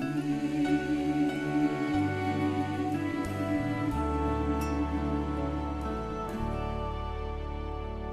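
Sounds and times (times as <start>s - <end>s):
soprano singing a hymn choir rehearsal part: 0.0s - 8.0s.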